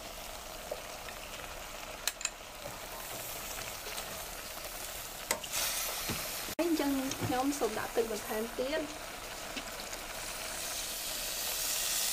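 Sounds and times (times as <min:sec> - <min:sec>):
mung beans sizzling in a pan while being stirred: 0:00.0 - 0:12.1
speech: 0:07.3 - 0:09.1.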